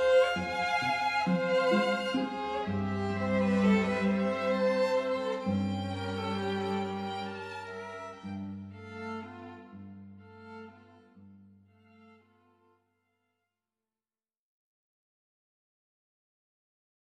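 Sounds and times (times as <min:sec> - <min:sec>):
string quartet playing: 0:00.0 - 0:11.3.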